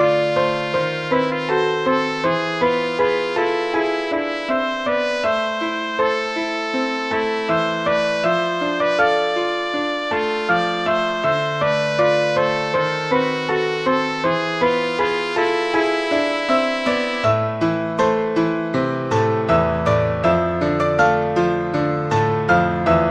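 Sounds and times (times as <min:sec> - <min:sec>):
trumpet in a trumpet and piano duet: 0:00.0 - 0:17.6
piano in a trumpet and piano duet: 0:00.0 - 0:23.0.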